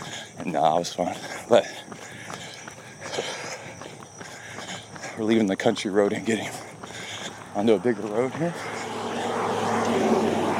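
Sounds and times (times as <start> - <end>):
speech: 0.4 - 2.0, 5.2 - 6.6, 7.6 - 8.8
car passing by: 7.5 - 10.5.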